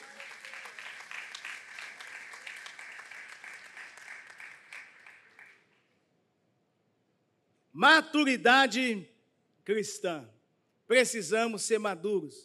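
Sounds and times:
audience applauding: 0:00.0 - 0:05.8
speech: 0:07.8 - 0:12.4.

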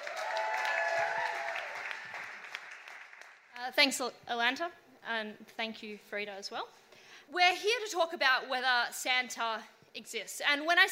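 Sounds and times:
scattered cheers: 0:00.0 - 0:02.2
crowd applause: 0:00.0 - 0:03.5
speech: 0:03.7 - 0:10.9.

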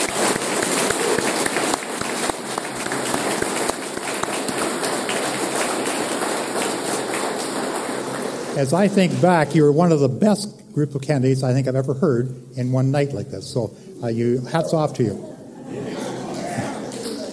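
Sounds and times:
round of applause for candidates: 0:00.0 - 0:08.9, 0:16.8 - 0:17.3
speech: 0:08.6 - 0:15.8
laughter: 0:14.2 - 0:17.3.

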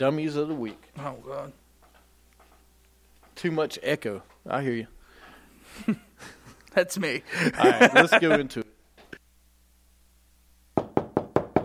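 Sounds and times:
speech: 0:00.0 - 0:01.6, 0:03.4 - 0:05.0, 0:05.7 - 0:08.7
laughter: 0:07.3 - 0:08.6
knocking on a door: 0:10.8 - 0:11.6.

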